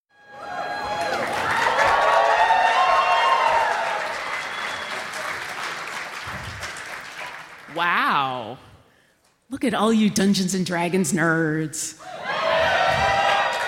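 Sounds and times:
whoops and cheers: 0.1 - 5.2, 12.0 - 13.6
live crowd applause: 0.2 - 7.8, 12.1 - 13.6
speech: 9.5 - 12.1.

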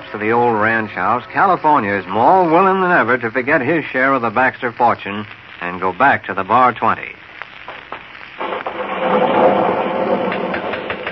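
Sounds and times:
speech: 0.2 - 7.3
thunder rumbling: 8.4 - 11.1.

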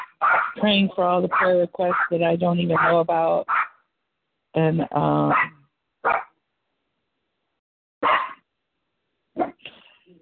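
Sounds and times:
excited dogs barking: 0.0 - 0.6, 1.3 - 3.7, 5.3 - 6.3, 8.0 - 8.4
speech: 0.6 - 3.5, 4.5 - 5.5.

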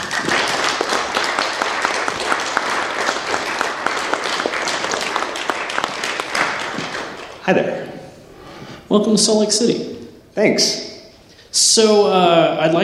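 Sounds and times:
crowd applauding: 0.0 - 7.6
speech: 7.5 - 7.8, 8.9 - 10.9, 11.6 - 12.8.

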